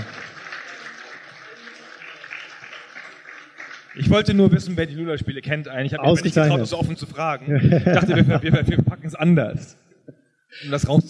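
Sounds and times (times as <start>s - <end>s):
applause: 0.0s - 4.9s
speech: 4.0s - 9.8s, 10.6s - 11.0s
laughter: 7.4s - 9.1s.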